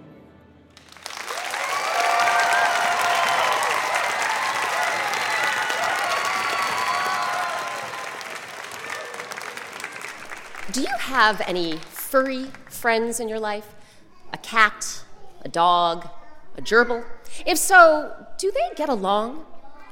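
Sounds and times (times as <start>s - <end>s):
live audience applauding and cheering: 0.8s - 12.8s
speech: 10.8s - 13.8s, 14.5s - 19.5s.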